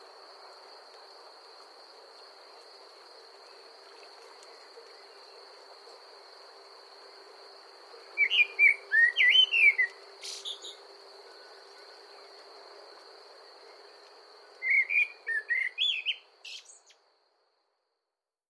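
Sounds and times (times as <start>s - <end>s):
common blackbird warbling: 8.2s - 10.8s, 14.6s - 16.8s.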